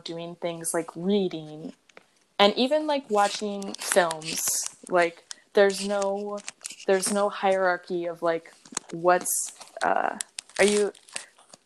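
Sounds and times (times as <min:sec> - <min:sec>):
speech: 0:00.0 - 0:01.8, 0:02.4 - 0:11.0
paper card crinkling: 0:03.1 - 0:07.2, 0:08.5 - 0:11.6.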